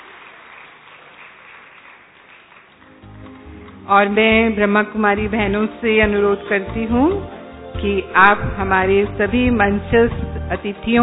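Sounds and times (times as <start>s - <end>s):
audience applause welcoming a guest: 0.0s - 3.6s
speech: 3.9s - 11.0s.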